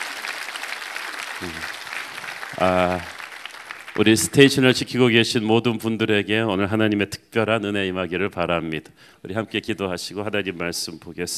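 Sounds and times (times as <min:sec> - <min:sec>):
audience applause: 0:00.0 - 0:04.7
speech: 0:01.4 - 0:01.8, 0:02.5 - 0:03.1, 0:04.0 - 0:11.3.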